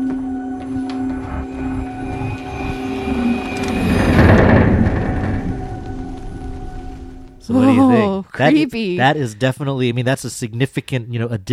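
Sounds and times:
wooden ship creaking: 0.0s - 7.5s
whoosh transition sound: 0.7s - 7.5s
speech: 8.4s - 11.5s.

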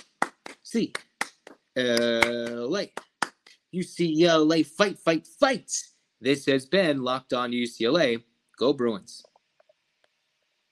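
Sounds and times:
rhythmic eight-count hand claps: 0.0s - 3.6s
brief voiced sound: 0.0s - 9.0s
speech: 0.7s - 1.1s, 1.8s - 3.1s, 3.7s - 9.3s.

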